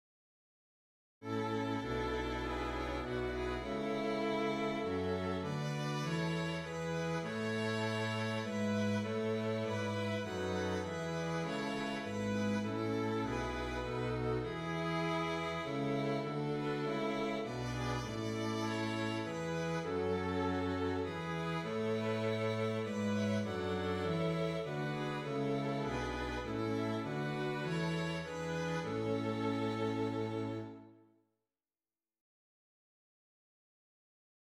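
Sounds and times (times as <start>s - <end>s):
strings playing a hymn: 1.2s - 31.0s.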